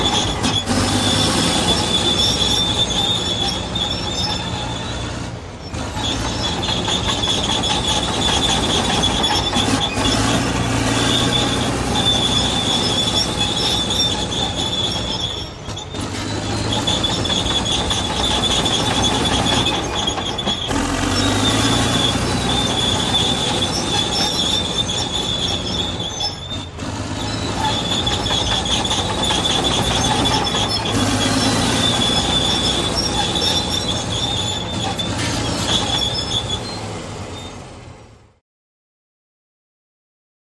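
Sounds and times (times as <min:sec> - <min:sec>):
large digger earthmover at work: 0:00.0 - 0:38.4
second vehicle in background: 0:00.0 - 0:38.4.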